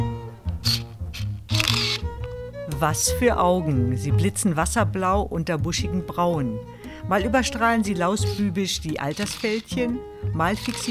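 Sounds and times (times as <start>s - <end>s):
camera shutter clicks: 0.6s - 2.3s, 9.1s - 9.7s, 10.6s - 10.9s
speech: 2.8s - 10.9s.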